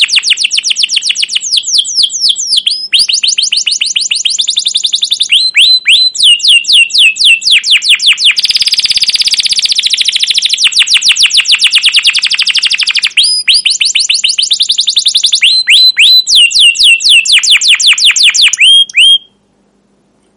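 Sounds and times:
canary singing long excited phrases: 0.0 - 19.4.

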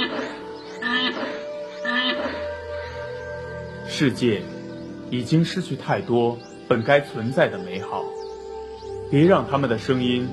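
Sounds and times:
West African black rhinoceros harsh harmonic calls: 0.0 - 3.0
steady soft musical drone: 0.0 - 10.3
speech: 4.0 - 8.2, 9.1 - 10.3.

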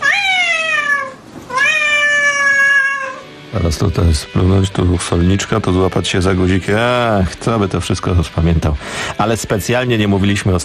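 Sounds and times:
black cat meowing: 0.0 - 3.3
speech: 3.6 - 10.6.

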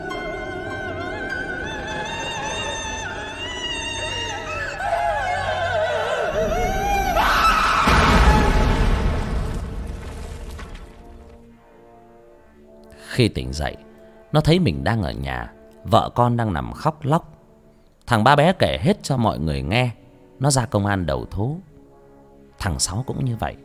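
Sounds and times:
ghostly screaming: 0.0 - 9.8
eerie wailing: 0.0 - 9.9
speech: 13.2 - 17.3, 18.1 - 21.7, 22.6 - 23.6.

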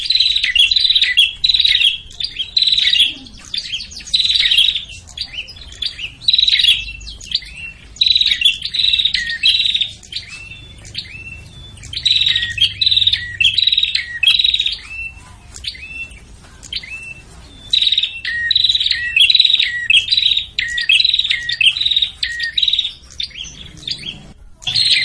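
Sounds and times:
prinia buzzy calls: 0.0 - 25.0.

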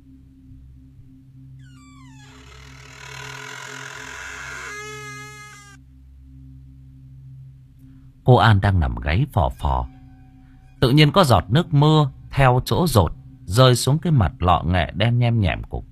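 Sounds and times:
door creaking in the night: 1.6 - 5.8
speech: 8.3 - 10.0, 10.8 - 15.9.

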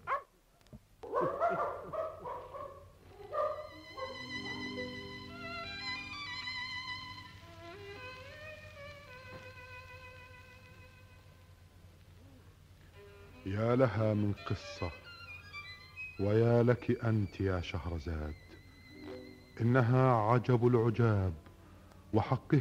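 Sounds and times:
dog barking and whimpering in a radio drama: 0.0 - 0.3, 1.0 - 4.8
sustained tonal music: 3.0 - 12.0, 12.9 - 22.6
speech: 13.6 - 15.0, 16.2 - 18.5, 19.6 - 21.4, 22.1 - 22.6.

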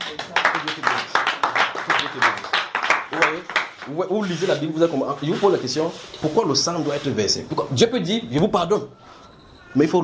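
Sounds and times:
audience applauding: 0.0 - 4.1
speech: 3.3 - 9.0, 9.7 - 10.0.

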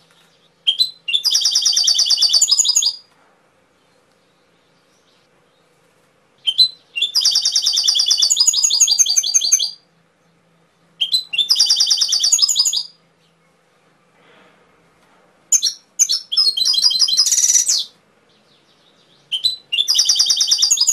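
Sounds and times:
canary singing trilled phrases: 0.6 - 3.1, 6.4 - 9.8, 11.0 - 13.0, 15.5 - 18.0, 18.6 - 20.9.

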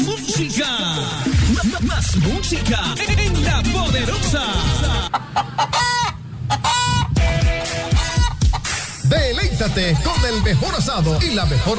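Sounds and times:
speech: 0.1 - 6.6, 9.6 - 11.7
chickens clucking and squawking: 4.6 - 11.7.

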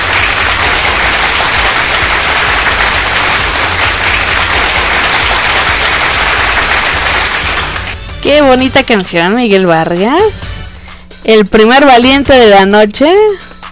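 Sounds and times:
applause: 0.0 - 8.0
speech: 8.2 - 10.5, 11.2 - 13.5.

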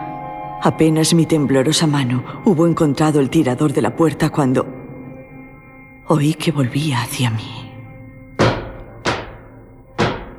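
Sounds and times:
speech: 0.6 - 4.8, 6.1 - 7.6
heavy footsteps of a woman hurrying up a house staircase: 8.4 - 10.3.

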